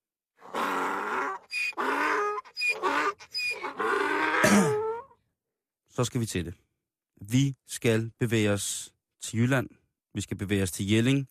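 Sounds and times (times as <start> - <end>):
donkey braying: 0.4 - 5.2
speech: 4.5 - 4.7, 6.0 - 11.2.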